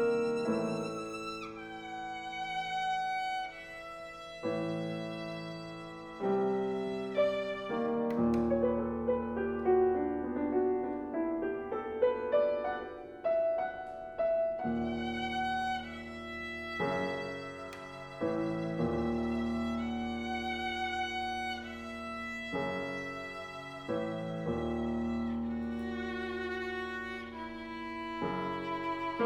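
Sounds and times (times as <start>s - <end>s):
violin and piano sonata: 0.0s - 29.2s.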